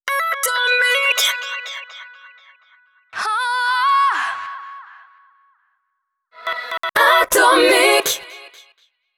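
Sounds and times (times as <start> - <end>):
a cappella jingle: 0.1 - 4.4, 6.4 - 8.9.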